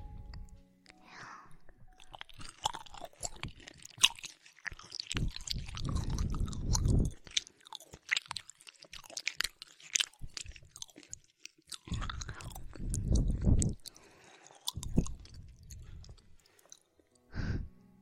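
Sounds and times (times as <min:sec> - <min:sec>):
person chewing and crunching a home-cooked meal: 0:00.0 - 0:17.4
soft breathing: 0:00.9 - 0:01.8, 0:11.9 - 0:17.8.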